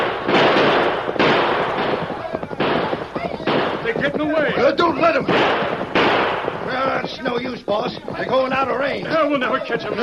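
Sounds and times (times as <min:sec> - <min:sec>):
gunshots fired at fleeing riders: 0:00.0 - 0:10.0
speech: 0:05.0 - 0:05.6, 0:07.1 - 0:10.0.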